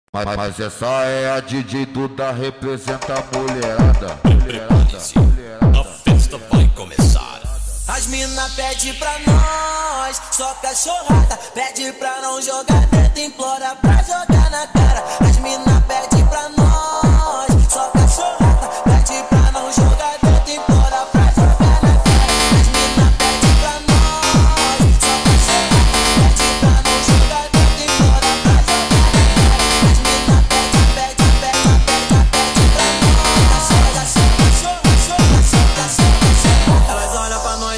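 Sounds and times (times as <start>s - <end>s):
sped up phonk music: 0.2s - 37.7s.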